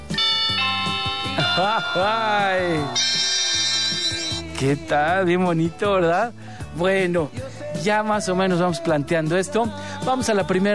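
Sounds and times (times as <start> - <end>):
mobile phone ringtone electronic melody: 0.0 - 4.5
speech: 1.6 - 3.2, 4.6 - 10.7.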